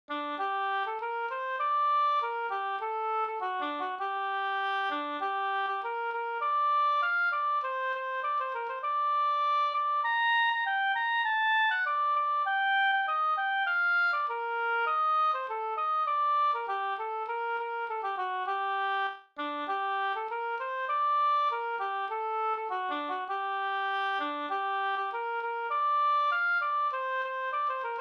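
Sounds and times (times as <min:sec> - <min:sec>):
folk song melody: 0:00.1 - 0:28.0.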